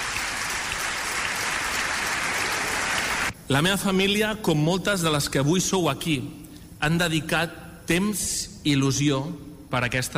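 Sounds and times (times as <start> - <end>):
audience applause: 0.0 - 3.3
speech: 3.5 - 10.1.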